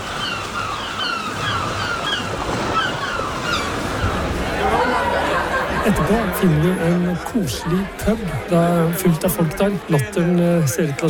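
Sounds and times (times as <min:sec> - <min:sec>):
seagulls screeching: 0:00.0 - 0:06.1
waves breaking on shore: 0:00.0 - 0:11.0
laughter: 0:04.1 - 0:11.0
speech: 0:05.8 - 0:11.0.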